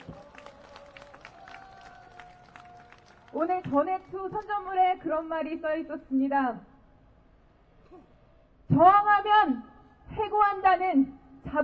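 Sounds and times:
crowd clapping outdoors welcoming performers: 0.0s - 4.5s
speech: 3.3s - 6.7s, 8.7s - 11.6s.

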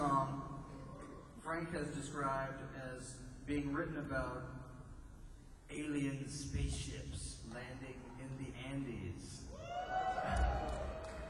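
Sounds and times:
speech: 1.5s - 4.6s, 5.7s - 10.8s
audience cheering and clapping: 9.5s - 11.2s
whoops: 9.5s - 11.2s.

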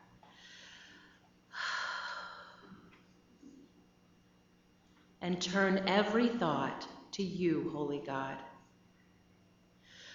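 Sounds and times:
deep breath: 0.2s - 2.9s, 9.8s - 10.1s
speech: 5.2s - 8.5s.

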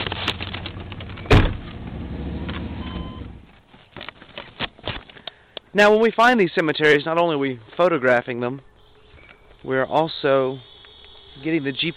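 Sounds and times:
truck engine rumble: 0.0s - 3.6s
truck door opening: 0.2s - 3.4s
speech: 5.8s - 8.7s, 9.6s - 10.7s, 11.4s - 11.9s.

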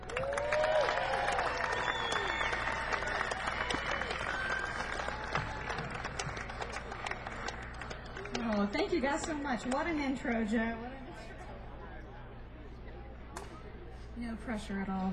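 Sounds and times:
audience applause: 0.0s - 9.8s
speech: 9.0s - 10.9s, 14.4s - 15.1s.

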